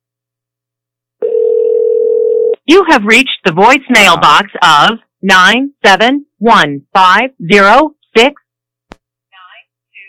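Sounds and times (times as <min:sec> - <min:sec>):
unanswered telephone ringing tone on the caller's end: 0:01.2 - 0:02.6
speech: 0:02.7 - 0:08.4.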